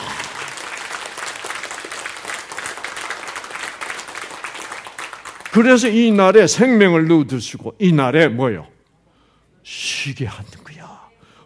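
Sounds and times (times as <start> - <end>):
audience applause: 0.0 - 6.0
speech: 5.5 - 8.7, 10.0 - 10.6.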